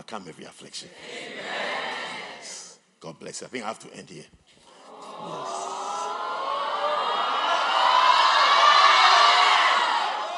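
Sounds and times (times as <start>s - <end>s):
speech: 0.1s - 1.8s, 2.4s - 4.6s, 5.2s - 5.7s
audience shouting: 4.8s - 10.3s.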